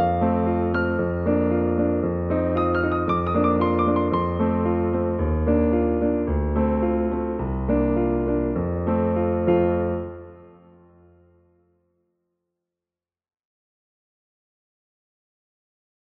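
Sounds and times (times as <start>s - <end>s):
piano: 0.0s - 12.0s.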